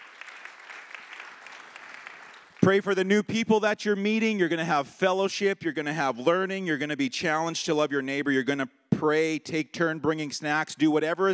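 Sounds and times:
audience applause: 0:00.0 - 0:02.8
speech: 0:02.6 - 0:11.3.

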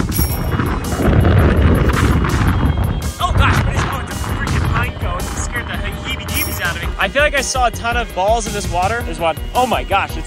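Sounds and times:
strong wind buffeting the microphone: 0:00.0 - 0:07.4
speech: 0:07.3 - 0:10.2.

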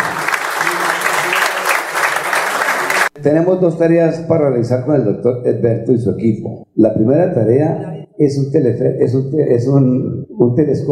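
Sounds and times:
audience applause: 0:00.0 - 0:03.1
speech: 0:03.2 - 0:10.9.

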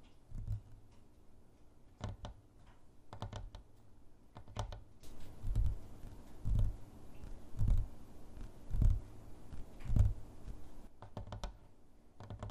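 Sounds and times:
faint steady hiss: 0:00.0 - 0:12.4
fingernails and finger pads tapping on objects: 0:02.0 - 0:03.7, 0:04.4 - 0:11.6, 0:12.2 - 0:12.5.

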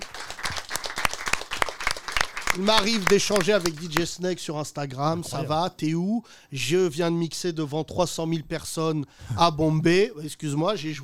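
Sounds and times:
crowd applauding: 0:00.0 - 0:04.1
speech: 0:02.6 - 0:11.0.

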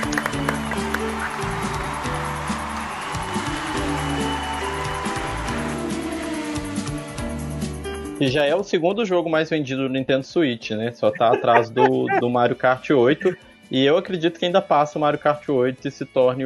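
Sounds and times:
applause: 0:00.0 - 0:06.9, 0:11.2 - 0:12.2
speech: 0:08.2 - 0:16.4
laughter: 0:11.1 - 0:13.4.

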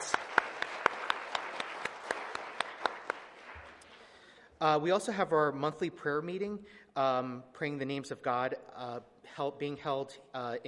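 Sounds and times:
audience round of applause: 0:00.0 - 0:04.1
speech: 0:04.6 - 0:10.6.

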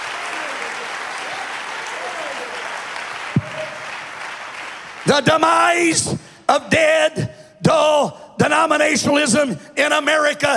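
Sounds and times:
audience clapping hands: 0:00.0 - 0:05.9
speech: 0:05.0 - 0:10.5.

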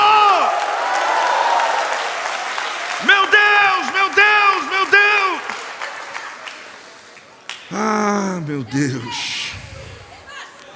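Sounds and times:
audience applauding and cheering: 0:00.0 - 0:08.4
speech: 0:08.6 - 0:09.4.

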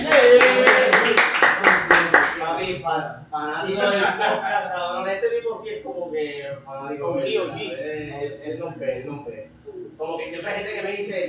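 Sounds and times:
audience clapping for a guest: 0:00.0 - 0:02.5
speech: 0:03.1 - 0:11.2
laughter: 0:03.7 - 0:05.0.

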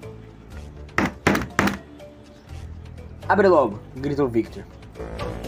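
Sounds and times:
knocking on a door: 0:01.0 - 0:01.8
speech: 0:03.3 - 0:05.2.

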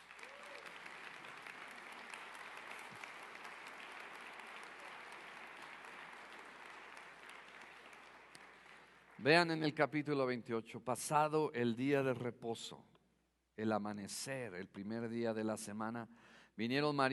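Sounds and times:
crowd applauding: 0:00.0 - 0:09.5
speech: 0:09.2 - 0:12.9, 0:13.6 - 0:17.1.

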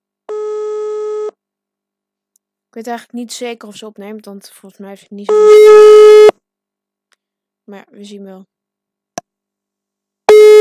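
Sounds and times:
speech: 0:02.8 - 0:06.3, 0:07.7 - 0:08.6
telephone ringing tone for an outgoing call: 0:05.3 - 0:06.3, 0:10.3 - 0:10.5.

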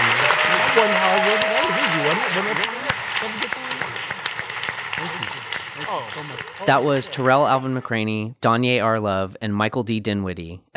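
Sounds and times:
audience applause: 0:00.0 - 0:07.9
speech: 0:00.8 - 0:01.5, 0:02.1 - 0:03.4, 0:05.9 - 0:10.7.

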